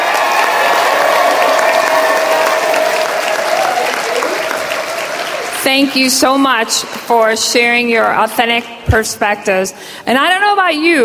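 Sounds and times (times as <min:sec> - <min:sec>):
audience applause: 0:00.0 - 0:06.2
speech: 0:05.7 - 0:11.0.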